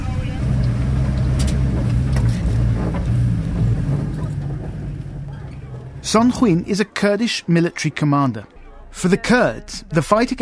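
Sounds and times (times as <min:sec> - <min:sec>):
homemade armored truck driving towards the center of Raqqa: 0:00.0 - 0:06.8
speech: 0:06.1 - 0:10.4.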